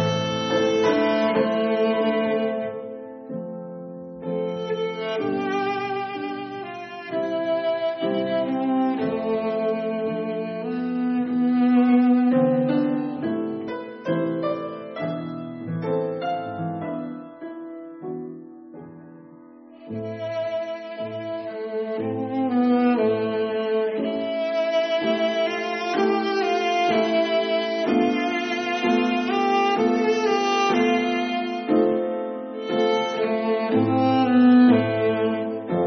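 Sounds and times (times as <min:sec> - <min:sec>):
cello: 0:00.0 - 0:35.8.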